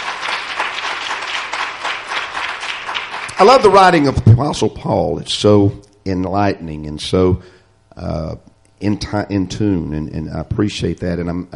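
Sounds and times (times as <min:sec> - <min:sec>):
audience hand clapping in praise: 0:00.0 - 0:04.3
speech: 0:03.4 - 0:11.5.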